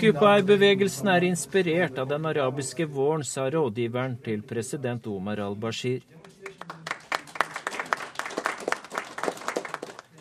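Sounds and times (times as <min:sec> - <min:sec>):
speech: 0:00.0 - 0:06.7
polite applause: 0:06.2 - 0:10.1.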